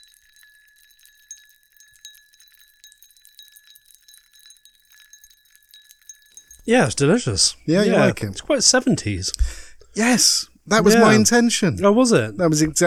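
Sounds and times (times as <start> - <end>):
cocktail glass clinking while drinking: 0.0 - 10.1
speech: 6.6 - 12.8.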